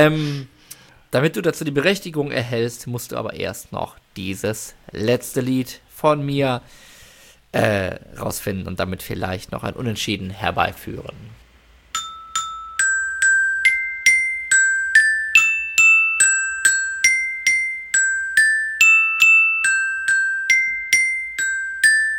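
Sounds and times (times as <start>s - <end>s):
speech: 0.0s - 0.5s, 1.1s - 6.9s, 7.5s - 11.4s
glockenspiel melody: 12.0s - 22.1s.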